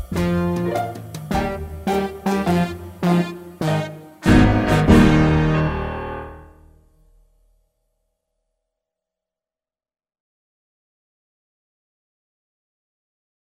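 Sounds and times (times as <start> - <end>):
shuffle rhythm music in E-flat: 0.0 - 5.8.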